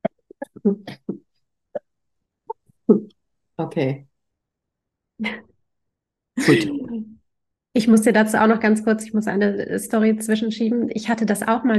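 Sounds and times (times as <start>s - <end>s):
speech: 0.6s - 1.0s, 3.6s - 4.1s, 5.2s - 5.4s, 6.4s - 6.8s, 7.8s - 11.7s
person coughing: 6.4s - 6.9s
laughter: 6.4s - 7.0s.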